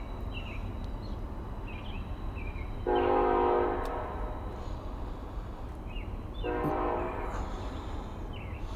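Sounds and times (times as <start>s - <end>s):
passing train: 0.0s - 8.7s
train horn: 2.8s - 4.5s, 6.4s - 7.7s.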